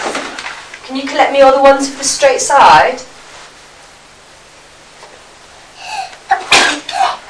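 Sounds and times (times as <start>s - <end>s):
speech: 0.9s - 3.1s
sneeze: 6.3s - 7.2s.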